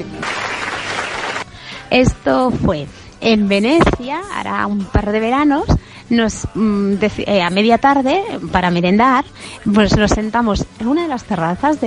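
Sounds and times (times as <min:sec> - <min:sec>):
applause: 0:00.0 - 0:01.5
speech: 0:01.9 - 0:11.8.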